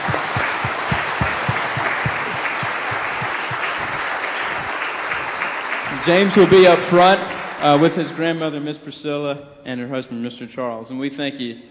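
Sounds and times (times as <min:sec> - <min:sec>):
audience clapping: 0:00.0 - 0:08.2
speech: 0:06.0 - 0:11.6.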